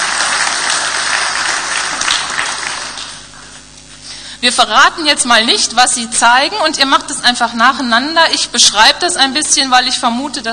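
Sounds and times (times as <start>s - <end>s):
audience applause: 0.0s - 3.4s
speech: 4.4s - 10.5s.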